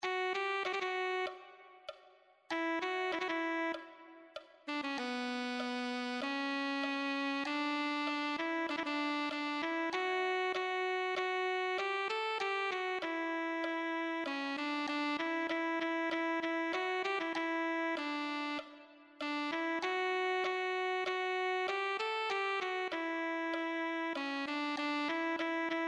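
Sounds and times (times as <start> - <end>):
alto saxophone: 0.0 - 25.8.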